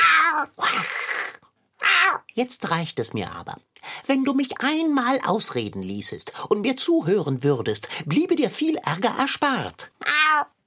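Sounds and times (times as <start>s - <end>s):
cat meowing: 0.0s - 0.6s, 1.8s - 2.3s, 10.0s - 10.5s
speech: 2.4s - 10.5s.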